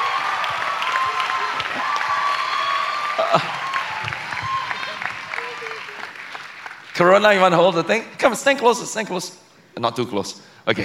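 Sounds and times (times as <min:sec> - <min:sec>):
faint voices and cheers: 0:00.0 - 0:06.4
crowd applauding: 0:00.0 - 0:08.0
speech: 0:07.0 - 0:10.8.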